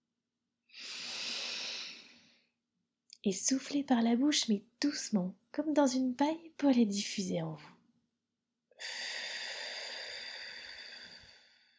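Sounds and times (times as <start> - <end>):
deep inhalation through the nose: 0.7 - 2.5, 8.8 - 11.7
speech: 3.2 - 7.8.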